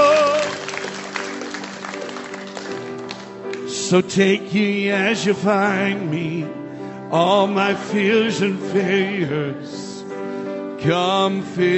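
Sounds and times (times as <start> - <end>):
audience applause: 0.0 - 4.0
speech: 3.9 - 9.8, 10.8 - 11.7.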